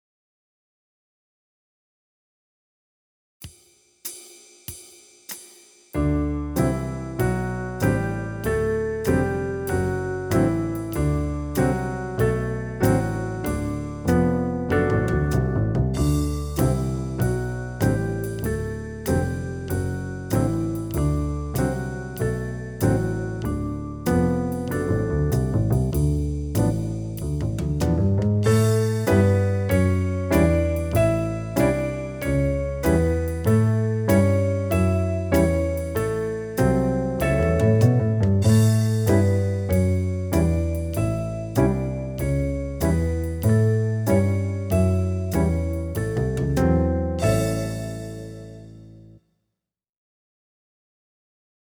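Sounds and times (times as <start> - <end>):
slow D and A major pentascales on piano: 6.0 - 49.1.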